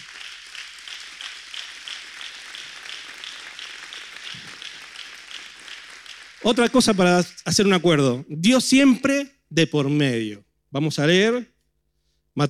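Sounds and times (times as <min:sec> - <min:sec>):
audience applause: 0:00.0 - 0:08.0
speech: 0:06.4 - 0:11.5.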